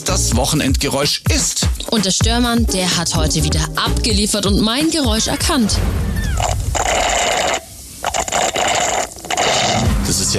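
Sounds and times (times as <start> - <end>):
speech: 0.0 - 6.6
slurping frothy iced coffee through a straw: 6.4 - 9.9.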